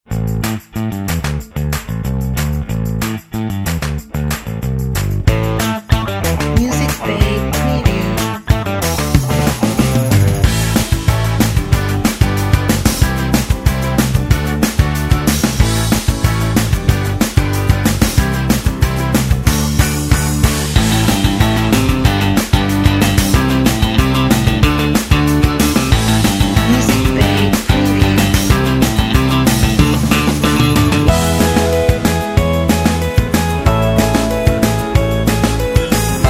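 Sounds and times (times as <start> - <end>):
positive pop rock music: 0.1 - 36.2.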